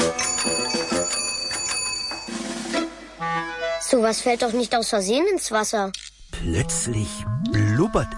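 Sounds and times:
bicycle bell ringing: 0.2s - 2.4s
speech: 3.9s - 8.1s.

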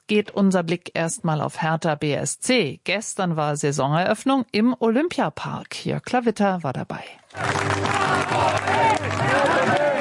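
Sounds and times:
speech: 0.1s - 9.9s
crowd cheering and clapping as the Hertha BSC team arrives in the Olympiapark: 7.3s - 9.9s.

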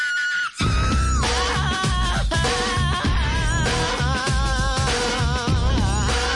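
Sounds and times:
short high human scream: 0.0s - 3.6s
loud funk groove with heavy bass and steady beat: 0.6s - 6.3s.

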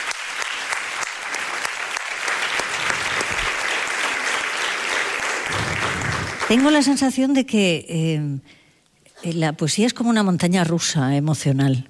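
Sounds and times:
audience applause: 0.0s - 6.9s
speech: 6.5s - 8.6s, 9.2s - 11.8s.

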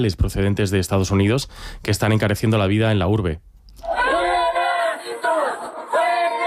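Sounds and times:
speech: 0.0s - 3.9s
protest crowd shouting slogan: 3.9s - 6.4s.

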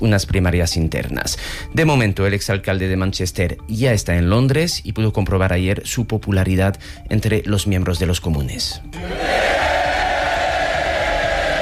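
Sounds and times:
speech: 0.0s - 9.8s
crowd shouting: 9.0s - 11.6s.

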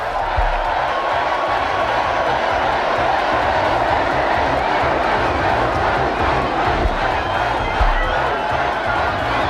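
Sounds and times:
festival crowd cheering and shouting: 0.0s - 9.4s.

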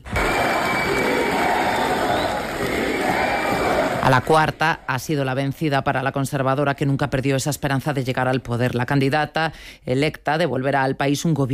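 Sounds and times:
crowd ovation and cheering: 0.0s - 5.2s
speech: 4.1s - 11.5s.

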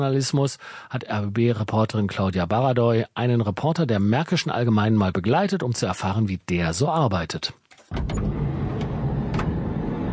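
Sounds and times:
speech: 0.0s - 8.3s
car engine rumble heard from inside the car: 7.9s - 10.1s
road noise from inside the car: 8.0s - 10.1s.

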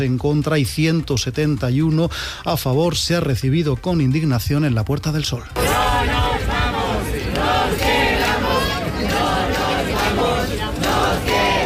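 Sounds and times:
speech: 0.0s - 5.8s
protesters chanting in a square: 5.6s - 11.6s.

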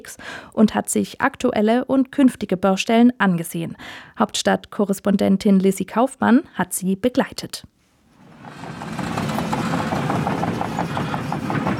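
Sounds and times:
speech: 0.0s - 7.8s
excavators rolling at the primary school in Kernen im Remstal: 8.2s - 11.7s.

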